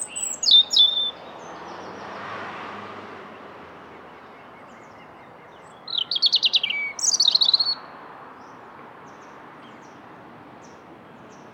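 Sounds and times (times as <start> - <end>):
European robin singing: 0.0 - 2.2, 4.0 - 10.0.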